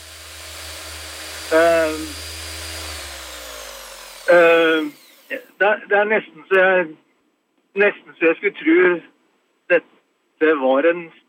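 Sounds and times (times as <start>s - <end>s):
circular saw cutting: 0.0s - 5.6s
speech: 1.5s - 2.3s, 5.6s - 7.0s, 7.7s - 9.1s, 9.7s - 11.2s.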